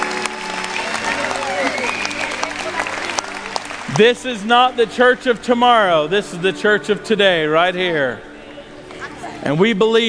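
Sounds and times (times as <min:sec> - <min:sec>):
audience applause: 0:00.0 - 0:04.8
speech: 0:04.0 - 0:08.3, 0:09.4 - 0:10.0.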